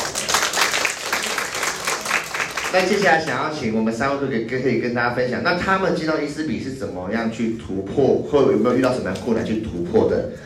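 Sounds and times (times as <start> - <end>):
crowd applauding: 0.0 - 3.4
speech: 2.7 - 10.4.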